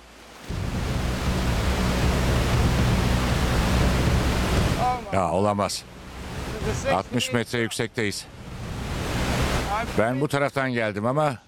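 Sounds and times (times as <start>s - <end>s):
large river rushing with a loud steady roar: 0.0s - 10.1s
speech: 5.1s - 6.0s, 6.6s - 8.4s, 9.8s - 11.4s.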